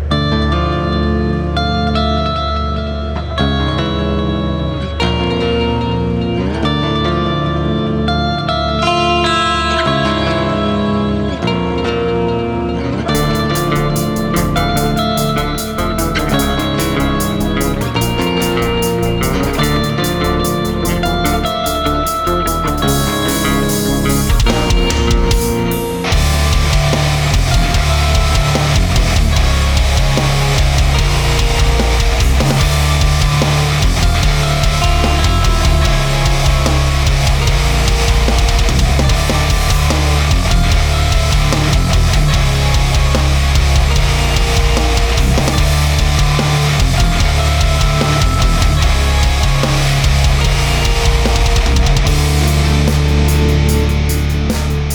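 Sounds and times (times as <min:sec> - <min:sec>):
instrumental metal remix: 0:00.1 - 0:54.9.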